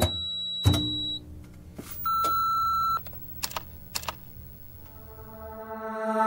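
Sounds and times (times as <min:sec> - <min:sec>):
Hollywood ringtone: 0:02.0 - 0:03.1.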